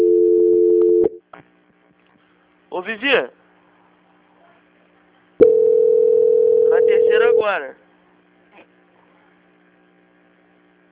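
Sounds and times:
telephone tone while a call is being transferred: 0.0 - 1.2, 5.4 - 7.3
speech: 2.7 - 3.4, 6.9 - 7.8.

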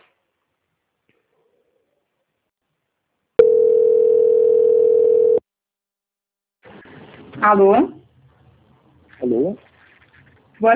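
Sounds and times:
telephone line tone while a call is being transferred: 3.4 - 5.4
speech: 7.4 - 8.0.

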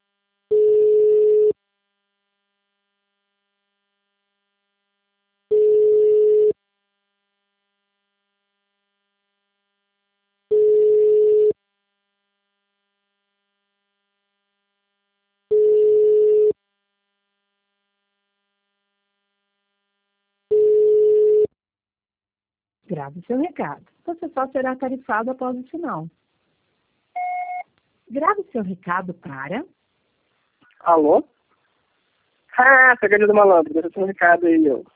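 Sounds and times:
ringback tone on an outgoing phone call: 0.5 - 1.6, 5.5 - 6.6, 10.5 - 11.6, 15.5 - 16.6, 20.5 - 21.5, 27.2 - 27.6
speech: 22.9 - 26.2, 28.1 - 29.8, 30.8 - 31.4, 32.6 - 34.9.

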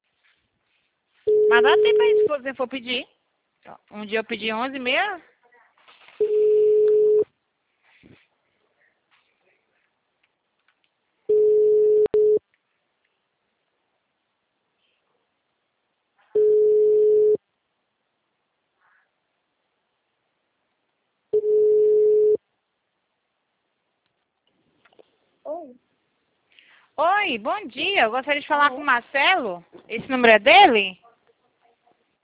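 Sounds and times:
telephone busy signal: 1.3 - 2.3, 6.2 - 7.2, 11.3 - 12.4, 16.4 - 17.4, 21.4 - 22.4
speech: 1.5 - 5.3, 27.3 - 31.0.

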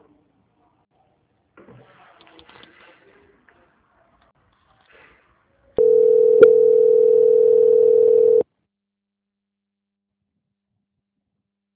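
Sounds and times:
telephone line tone while a call is transferred: 5.8 - 8.4.

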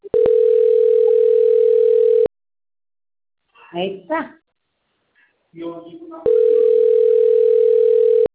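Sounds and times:
telephone dial tone: 0.1 - 2.3, 6.3 - 8.3
speech: 3.7 - 4.4, 5.5 - 6.6.

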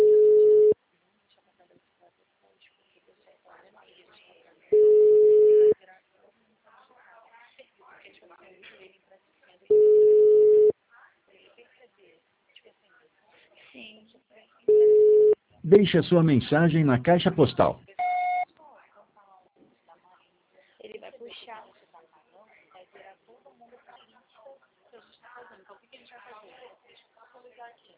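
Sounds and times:
telephone ringback tone while calling a client: 0.0 - 0.8, 4.8 - 5.8, 9.7 - 10.7, 14.7 - 15.4, 18.0 - 18.4
speech: 15.8 - 17.9.

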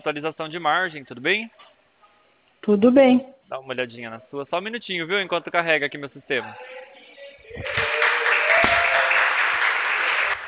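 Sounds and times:
speech: 0.0 - 1.7, 2.6 - 6.8
office staff applauding to celebrate a sale: 7.5 - 10.4.

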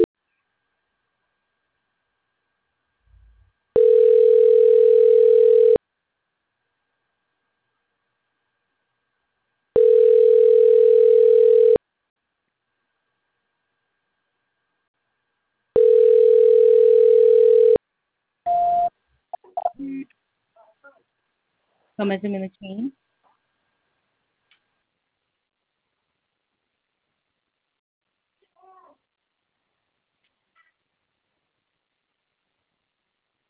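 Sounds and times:
telephone line beeps during a call transfer: 3.8 - 5.8, 9.8 - 11.8, 15.8 - 17.8, 18.5 - 18.9
speech: 22.0 - 23.0.

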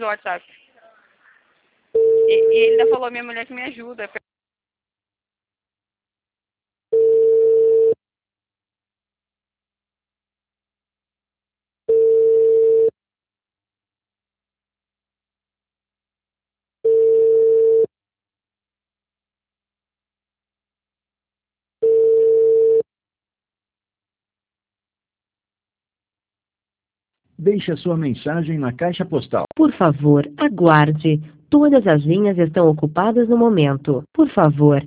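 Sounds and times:
speech: 0.0 - 0.6, 1.9 - 4.3, 27.4 - 34.8
ringback tone of an unanswered telephone call: 7.0 - 8.0, 11.9 - 12.9, 16.9 - 17.9, 21.8 - 22.8.

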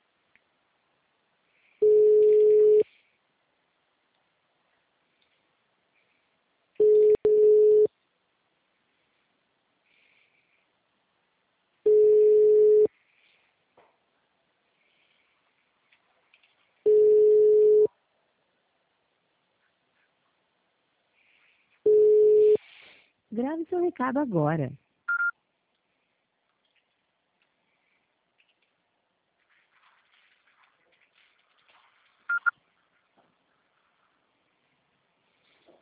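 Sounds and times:
telephone calling tone beeps: 1.8 - 2.8, 6.8 - 7.9, 11.9 - 12.9, 16.9 - 17.9, 21.9 - 22.6, 25.1 - 25.3, 32.3 - 32.5
speech: 23.3 - 24.8.

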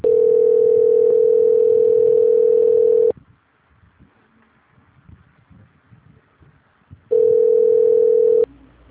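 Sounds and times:
telephone line tone during call transfer: 0.0 - 3.1, 7.1 - 8.5.

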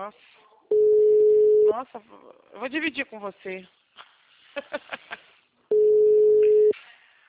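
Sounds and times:
speech: 0.0 - 0.8, 1.7 - 3.8, 4.6 - 5.2
telephone ringing while waiting for someone to answer: 0.7 - 1.7, 5.7 - 6.7.

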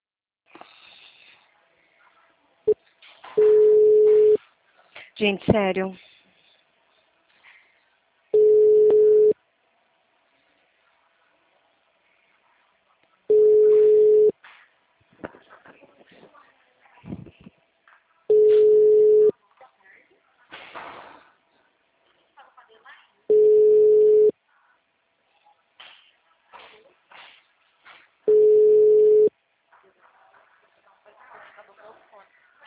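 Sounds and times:
telephone busy signal beeps: 3.4 - 4.4, 8.4 - 9.4, 13.3 - 14.3, 18.3 - 19.3, 23.3 - 24.3, 28.3 - 29.3
speech: 5.2 - 6.1.

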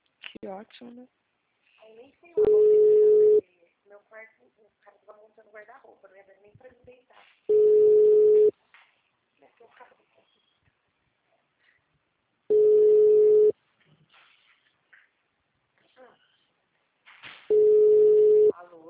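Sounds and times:
speech: 0.4 - 1.2, 1.9 - 8.4
ringback tone of an unanswered phone call: 2.4 - 3.4, 7.5 - 8.5, 12.5 - 13.5, 17.5 - 18.5.

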